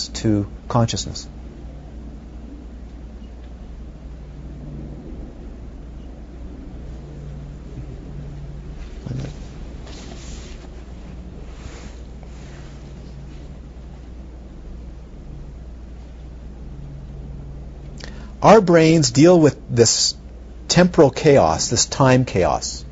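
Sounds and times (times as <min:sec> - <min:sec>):
speech: 0:00.2 - 0:01.4, 0:18.4 - 0:20.2, 0:20.8 - 0:22.9
wind howling: 0:01.6 - 0:12.1.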